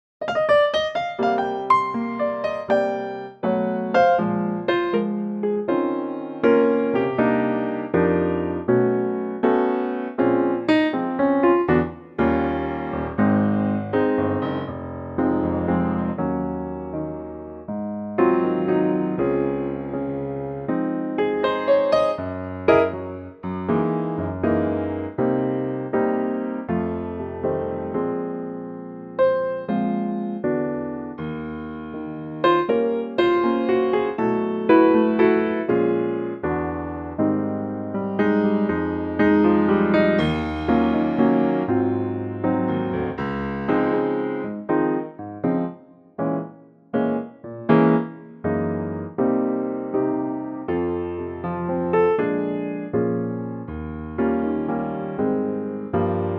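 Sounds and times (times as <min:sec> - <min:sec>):
piano in A-flat: 0:00.0 - 0:56.3.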